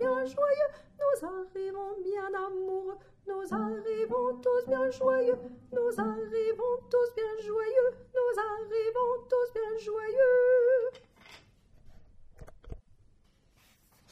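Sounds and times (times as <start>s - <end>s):
tenor singing: 0.0s - 10.9s.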